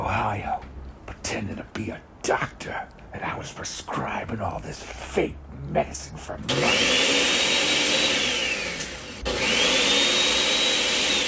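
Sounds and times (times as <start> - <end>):
speech: 1.3 - 7.2
blender running while making a smoothie: 6.5 - 11.2.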